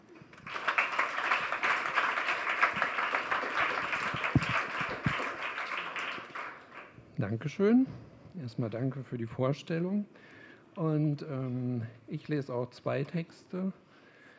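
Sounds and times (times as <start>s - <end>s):
audience applause: 0.3s - 6.9s
speech: 7.2s - 13.8s.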